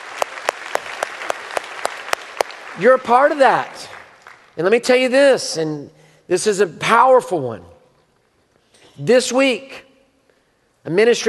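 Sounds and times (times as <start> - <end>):
church congregation applauding: 0.0 - 4.6
speech: 2.8 - 3.9, 4.6 - 7.7, 9.0 - 9.8, 10.8 - 11.2.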